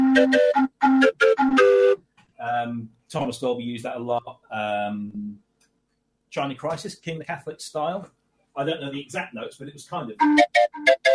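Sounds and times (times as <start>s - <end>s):
sampled Swanee whistle tune: 0.0s - 2.0s, 10.2s - 11.1s
speech: 0.2s - 5.4s, 6.3s - 11.0s.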